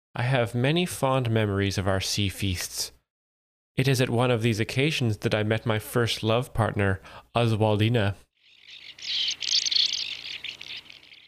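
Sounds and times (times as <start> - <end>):
speech: 0.2 - 3.0, 3.8 - 8.3, 9.0 - 9.4
ancient murrelet calls: 8.5 - 11.2.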